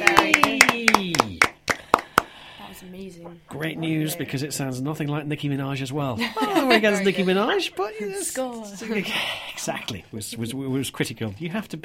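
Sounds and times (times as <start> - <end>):
person cheering: 0.0 - 1.5
handclaps: 0.0 - 2.4
speech: 3.6 - 11.8
laughter: 6.2 - 7.6.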